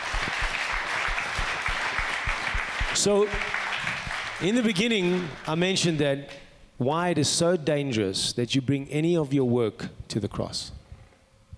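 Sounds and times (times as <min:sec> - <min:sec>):
audience round of applause: 0:00.0 - 0:05.9
speech: 0:03.0 - 0:03.6, 0:04.4 - 0:10.8.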